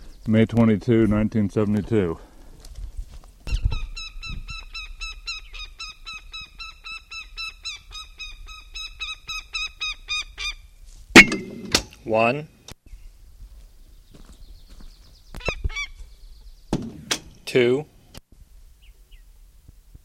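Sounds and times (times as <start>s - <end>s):
speech: 0.2s - 2.3s, 12.2s - 12.6s, 17.5s - 17.9s
goshawk calling at its nest: 3.5s - 10.6s, 15.3s - 16.1s.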